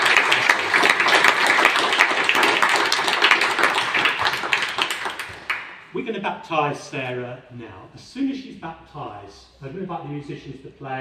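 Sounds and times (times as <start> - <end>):
audience applause: 0.0 - 5.8
speech: 6.1 - 10.9.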